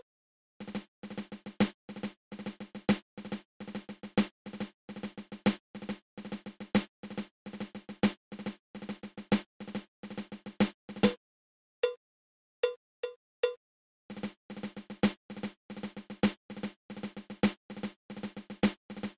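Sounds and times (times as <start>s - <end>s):
double ratamacue snare drum rudiment: 0.6s - 11.2s, 14.1s - 19.1s.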